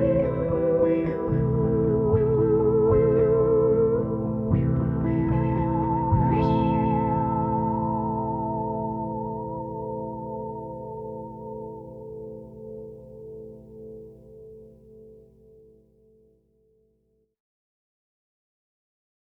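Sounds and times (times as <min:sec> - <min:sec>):
theremin: 0:00.0 - 0:14.5.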